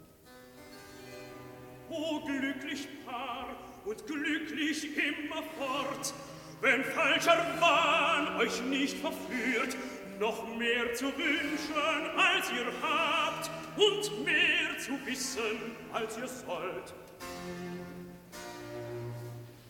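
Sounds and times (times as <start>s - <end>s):
sung recitative: 1.9s - 17.1s.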